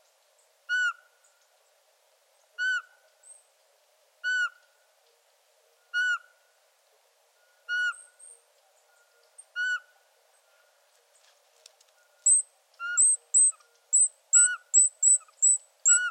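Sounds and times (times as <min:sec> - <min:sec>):
Eurasian pygmy owl calling: 0:00.7 - 0:01.1, 0:02.6 - 0:02.9, 0:04.2 - 0:04.6, 0:05.9 - 0:06.3, 0:07.7 - 0:08.2, 0:09.5 - 0:10.0, 0:12.2 - 0:16.0.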